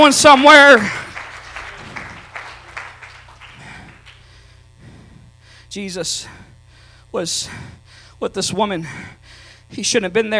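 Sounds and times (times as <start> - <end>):
speech: 0.0 - 1.0, 5.7 - 6.4, 7.1 - 10.3
audience clapping hands: 0.0 - 4.4.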